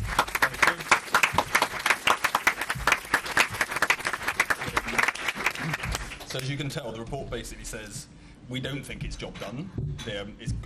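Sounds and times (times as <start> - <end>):
audience applause: 0.0 - 6.6
speech: 6.3 - 10.6.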